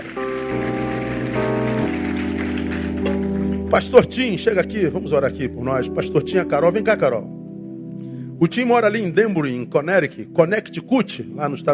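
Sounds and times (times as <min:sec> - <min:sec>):
audience applauding: 0:00.0 - 0:04.1
sustained keyboard chords: 0:00.0 - 0:11.7
speech: 0:00.1 - 0:00.4, 0:03.7 - 0:07.4, 0:08.4 - 0:11.7.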